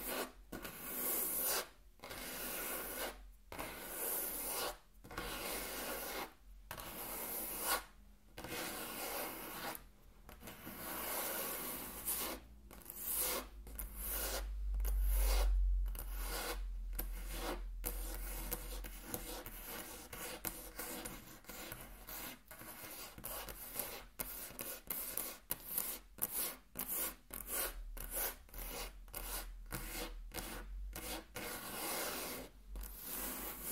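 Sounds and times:
raspy tracing strokes on a table: 0.0 - 33.6.

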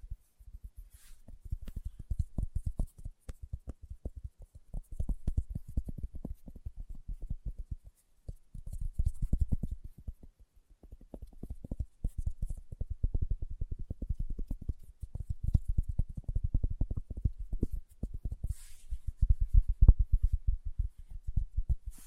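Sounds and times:
fingertips tapping: 0.5 - 13.0, 13.8 - 22.0.

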